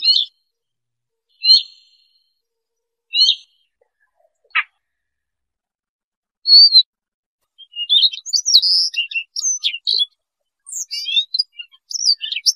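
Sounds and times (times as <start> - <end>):
Siberian rubythroat singing: 0.0 - 0.3, 1.4 - 1.8, 3.1 - 3.6, 7.6 - 10.1, 10.7 - 12.5.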